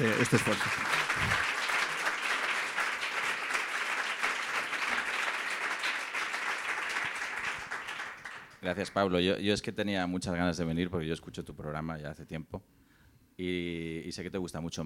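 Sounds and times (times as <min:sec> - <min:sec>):
speech: 0:00.0 - 0:01.5, 0:08.6 - 0:12.8, 0:13.4 - 0:14.8
audience applause: 0:00.0 - 0:08.6.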